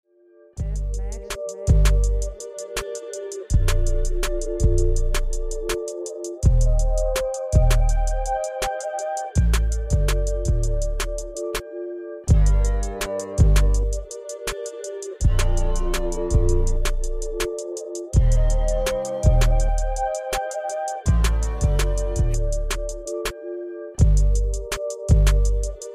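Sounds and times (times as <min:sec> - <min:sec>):
instrumental music: 0:00.5 - 0:25.9.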